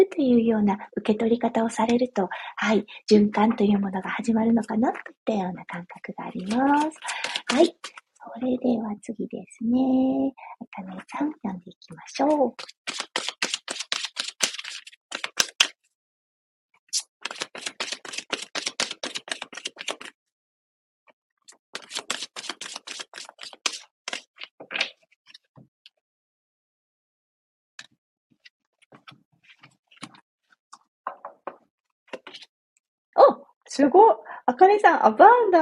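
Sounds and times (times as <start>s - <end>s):
speech: 0.0s - 13.3s, 33.8s - 35.6s
deck of cards being shuffled: 6.3s - 8.0s, 12.5s - 15.8s, 16.9s - 20.1s, 21.7s - 25.4s, 28.9s - 30.2s, 32.1s - 32.5s
cards tapping and flicking as they settle: 6.4s - 8.0s, 12.6s - 15.7s, 17.2s - 20.1s, 21.8s - 25.0s.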